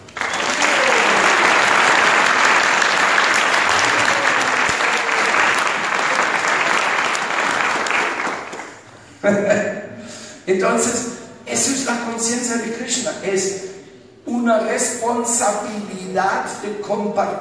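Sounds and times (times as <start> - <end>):
audience applause: 0.0 - 8.9
laughter: 0.4 - 2.4
speech: 9.3 - 9.6, 10.5 - 17.3.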